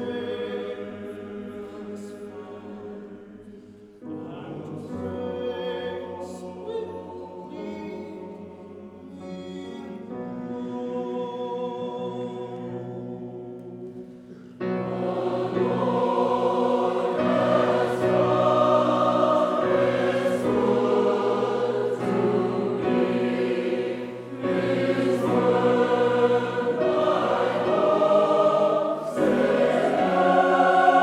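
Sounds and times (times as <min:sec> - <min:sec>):
tenor choir singing a hymn: 0:00.0 - 0:31.0.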